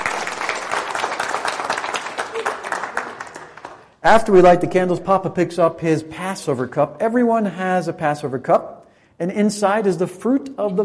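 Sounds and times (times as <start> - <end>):
audience applause: 0.0 - 3.9
speech: 4.0 - 10.8.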